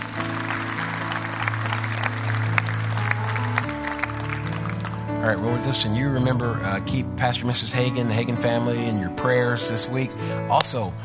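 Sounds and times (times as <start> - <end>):
audience applause: 0.0 - 5.8
held organ or keyboard chords: 0.0 - 11.0
speech: 5.2 - 11.0.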